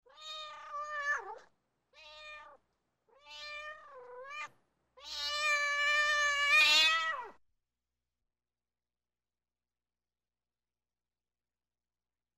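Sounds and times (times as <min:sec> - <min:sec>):
cat meowing: 0:00.1 - 0:07.4.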